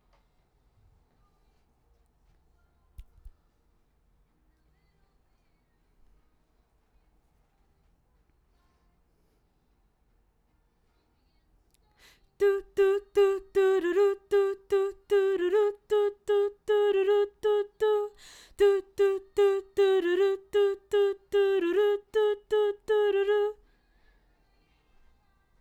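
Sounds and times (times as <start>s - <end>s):
background vocals: 12.0s - 23.7s.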